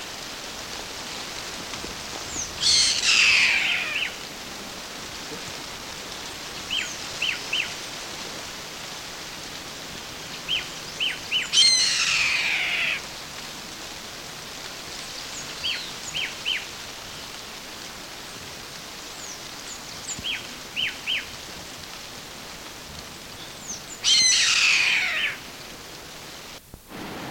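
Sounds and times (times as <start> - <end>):
steady hiss: 0.0 - 27.2
bird rasping screech: 2.6 - 4.1, 11.6 - 13.0, 24.1 - 25.4.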